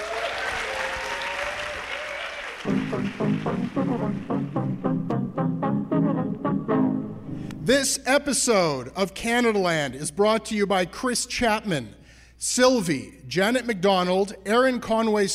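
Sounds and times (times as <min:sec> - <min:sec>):
audience applause: 0:00.0 - 0:04.6
speech: 0:02.6 - 0:15.3.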